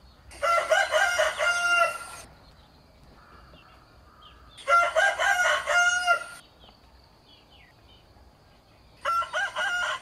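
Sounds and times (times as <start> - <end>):
rooster crowing: 0.4 - 2.2, 4.6 - 6.4, 9.0 - 10.0.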